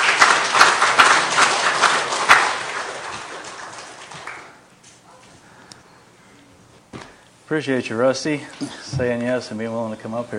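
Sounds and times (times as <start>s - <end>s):
audience applause welcoming a guest to the stage: 0.0s - 4.6s
speech: 7.5s - 10.3s.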